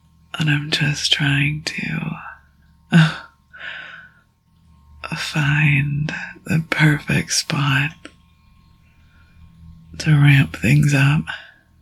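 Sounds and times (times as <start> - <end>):
speech: 0.4 - 2.1, 2.9 - 3.2, 5.4 - 8.1, 10.0 - 11.5
sick person gasping and raspy breathing: 3.0 - 4.2.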